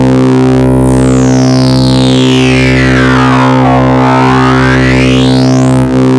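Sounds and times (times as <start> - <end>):
fat PWM oscillator synth bass: 0.0 - 6.1.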